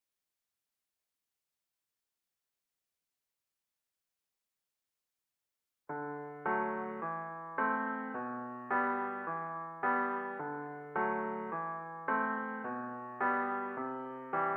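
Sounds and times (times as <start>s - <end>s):
piano music for an action RPG game: 5.9s - 14.5s.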